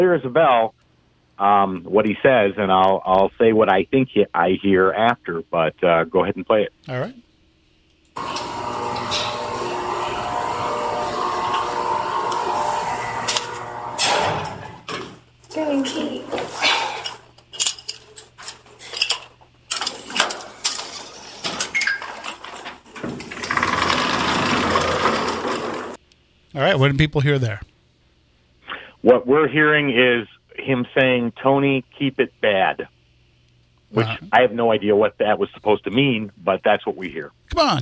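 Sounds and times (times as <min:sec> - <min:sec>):
speech: 0:00.0 - 0:00.8, 0:01.4 - 0:07.2, 0:26.6 - 0:27.7, 0:29.0 - 0:33.0, 0:33.9 - 0:37.8
elevator running: 0:08.2 - 0:19.0, 0:19.7 - 0:26.0.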